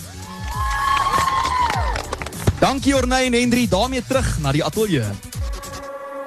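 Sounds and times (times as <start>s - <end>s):
audience applause: 0.0s - 2.8s
speech: 2.6s - 5.3s.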